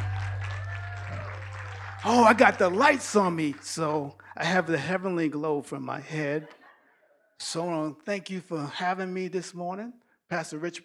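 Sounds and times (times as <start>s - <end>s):
audience hand clapping: 0.0s - 4.2s
speech: 2.0s - 6.6s, 7.4s - 10.8s.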